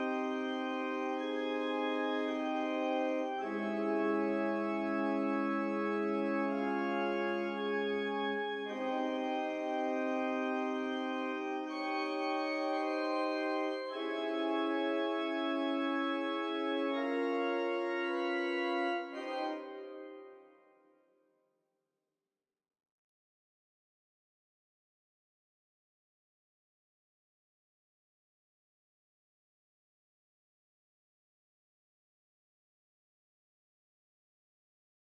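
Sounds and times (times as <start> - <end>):
synths and keys: 0.0 - 20.6.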